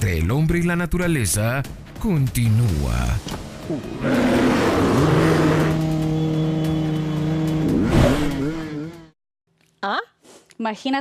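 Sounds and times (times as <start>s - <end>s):
speech: 0.0s - 5.4s, 10.6s - 10.9s
motorcycle engines revving: 3.8s - 9.2s.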